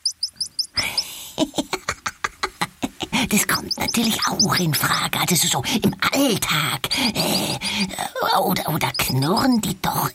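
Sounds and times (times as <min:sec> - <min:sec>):
ground squirrels chirping: 0:00.0 - 0:01.2, 0:03.2 - 0:10.1
speech: 0:01.4 - 0:01.8, 0:03.3 - 0:10.1.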